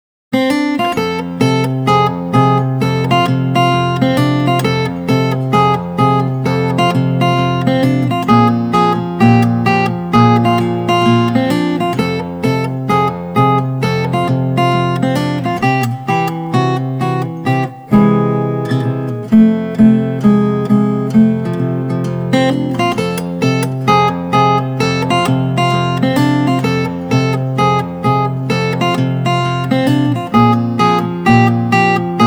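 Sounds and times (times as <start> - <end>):
easy boogie-woogie solo guitar: 0.4 - 32.2.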